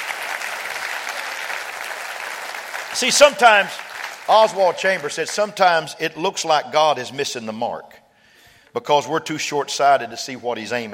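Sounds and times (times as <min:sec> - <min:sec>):
audience applauding: 0:00.0 - 0:05.6
speech: 0:03.0 - 0:08.0, 0:08.7 - 0:10.9.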